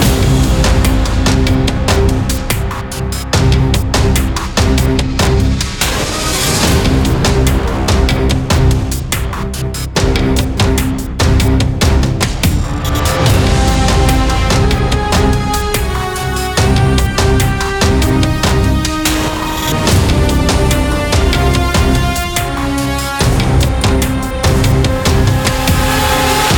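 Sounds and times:
intense combat background music: 0.0 - 26.5.

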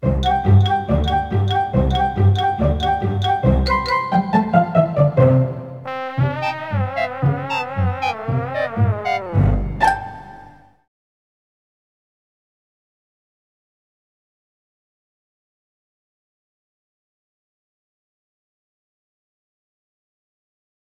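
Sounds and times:
in-game music: 0.0 - 10.8.

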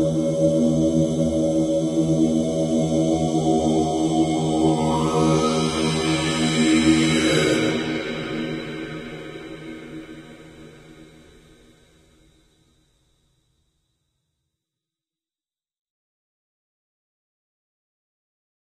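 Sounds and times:
church monks: 0.0 - 10.8.

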